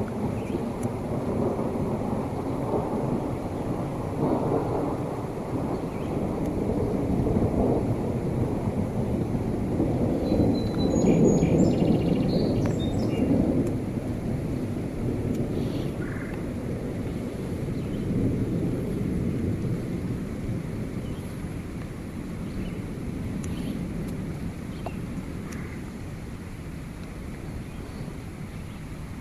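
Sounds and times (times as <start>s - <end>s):
deep rolling thunder: 0.0s - 25.9s
steady hiss of rainfall: 0.0s - 29.1s
brief high bird chirps: 10.3s - 13.3s.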